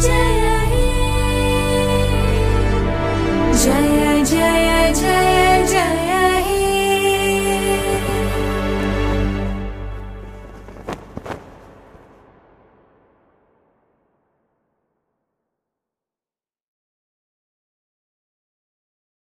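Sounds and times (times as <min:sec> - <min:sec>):
national anthem music: 0:00.0 - 0:12.2.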